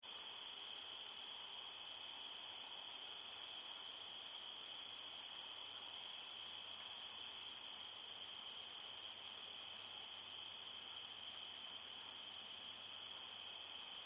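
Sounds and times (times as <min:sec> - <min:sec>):
several crickets chirping at night at a forest edge: 0:00.1 - 0:14.0.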